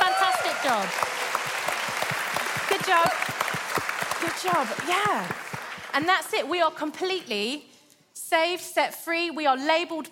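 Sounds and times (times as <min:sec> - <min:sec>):
audience cheering and applause for the children: 0:00.0 - 0:06.3
speech: 0:00.6 - 0:01.1, 0:04.4 - 0:05.4, 0:06.0 - 0:07.7, 0:08.3 - 0:10.0.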